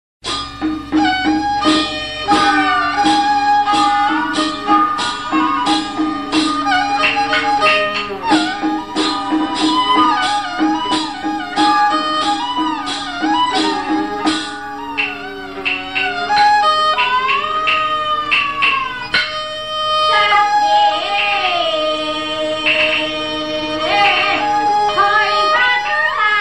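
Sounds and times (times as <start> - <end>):
traditional Taiwanese music: 0.2 - 26.3.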